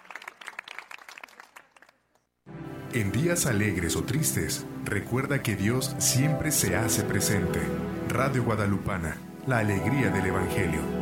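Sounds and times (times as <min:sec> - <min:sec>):
crowd applause: 0:00.0 - 0:02.0
speech: 0:02.9 - 0:10.9.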